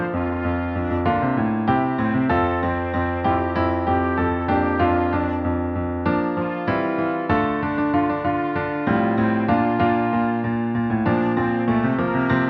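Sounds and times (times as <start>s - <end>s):
piano soprano melody: 0.0s - 12.4s.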